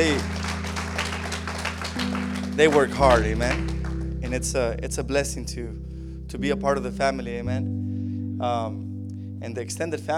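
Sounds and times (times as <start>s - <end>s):
audience applause: 0.0s - 4.1s
low organ-like chord droning: 0.0s - 10.1s
speech: 2.6s - 3.7s, 4.3s - 7.8s, 8.4s - 10.1s.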